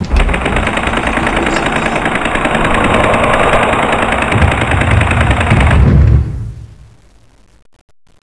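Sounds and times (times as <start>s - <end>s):
door moving: 0.0s - 6.4s.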